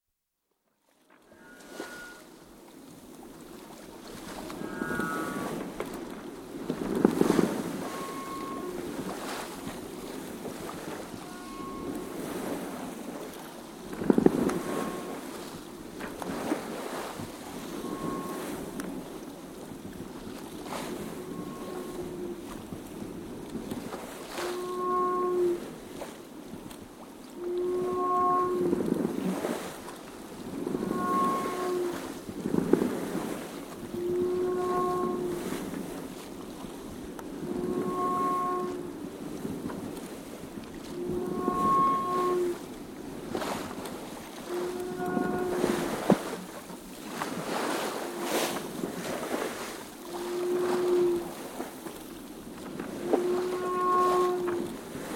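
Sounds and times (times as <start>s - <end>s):
30ft GRP sloop-rigged Halmatic 30 yacht sailing close hauled in wind force 4: 0.7s - 55.1s
horn on channel marker buoy: 1.2s - 2.3s, 4.5s - 5.6s, 7.0s - 9.5s, 10.6s - 12.6s, 14.0s - 15.6s, 17.5s - 19.0s, 20.7s - 22.5s, 24.3s - 25.7s, 27.4s - 29.6s, 30.5s - 32.2s, 33.8s - 35.7s, 37.4s - 39.0s, 40.8s - 42.7s, 44.3s - 46.4s, 47.4s - 49.4s, 50.0s - 51.4s, 52.8s - 55.1s.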